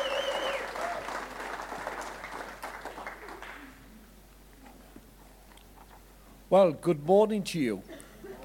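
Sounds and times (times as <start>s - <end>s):
applause and cheering: 0.0s - 3.8s
speech: 6.5s - 7.9s.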